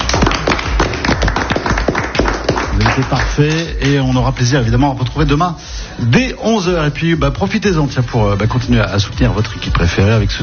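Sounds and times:
café audience clapping: 0.0 - 5.2, 9.2 - 10.4
speech: 3.0 - 10.4.

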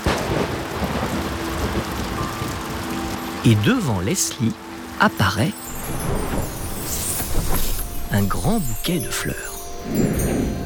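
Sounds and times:
thunderclap: 0.0 - 2.7, 5.7 - 8.6
rain: 0.0 - 10.6
speech: 3.4 - 6.0, 8.1 - 10.6.

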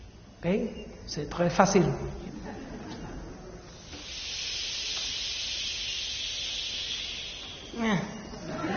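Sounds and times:
speech: 0.4 - 2.5
laughter: 2.2 - 3.8, 7.8 - 8.7
audience imitating sea waves: 4.1 - 8.7.

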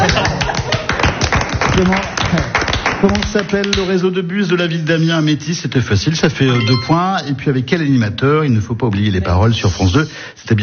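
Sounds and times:
audience applause during a French quiz game: 0.0 - 3.8
speech: 1.8 - 10.6.

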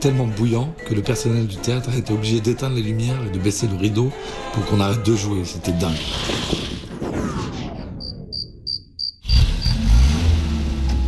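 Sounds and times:
speech: 0.0 - 6.7
insect-like chirps: 8.0 - 9.8
repaired car engine starting and running: 9.2 - 11.0.

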